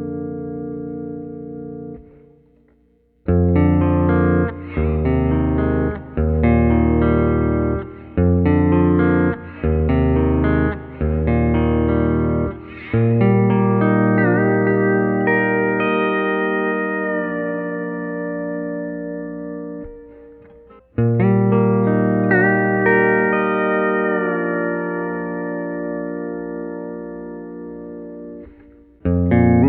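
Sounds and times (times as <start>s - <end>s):
electric guitar bottom strings through an Axe FX3 processor: 0.0s - 29.6s.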